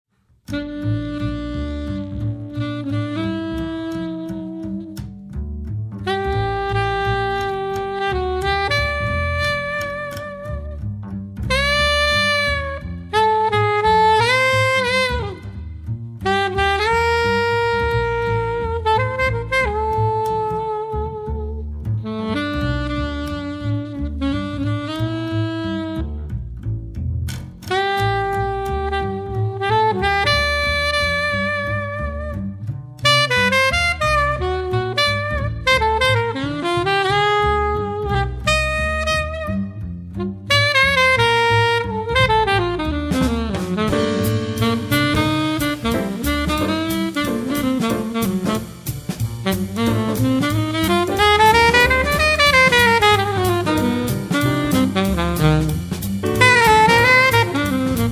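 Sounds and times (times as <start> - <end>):
jazz quartet playing: 0.4 - 58.0.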